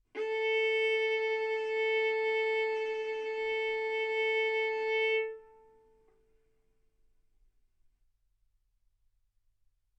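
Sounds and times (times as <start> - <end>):
violin bowed mezzo-forte on the A string, A4 and B4: 0.2 - 5.8.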